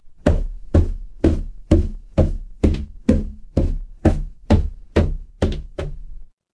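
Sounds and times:
footsteps on stairs: 0:00.0 - 0:06.3.

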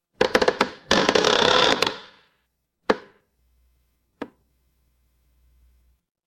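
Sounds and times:
horror creak: 0:00.2 - 0:02.1.

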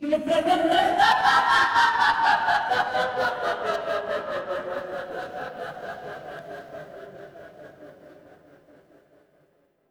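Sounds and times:
crowd laughing: 0:00.2 - 0:07.9.

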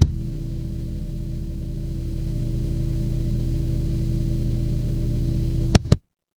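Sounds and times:
electric hum: 0:00.0 - 0:06.0.

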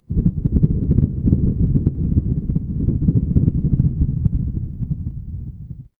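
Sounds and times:
thunder: 0:00.1 - 0:05.9.

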